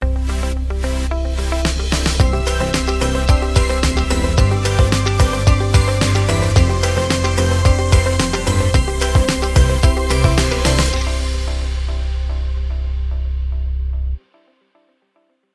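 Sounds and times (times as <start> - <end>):
uplifting summer synth: 0.0 - 13.2.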